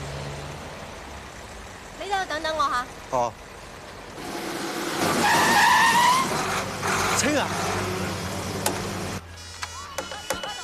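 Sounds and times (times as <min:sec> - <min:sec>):
engine and road noise: 0:00.0 - 0:10.6
speech: 0:02.1 - 0:03.5, 0:07.2 - 0:07.8
car tires screeching in a skid: 0:04.2 - 0:09.2.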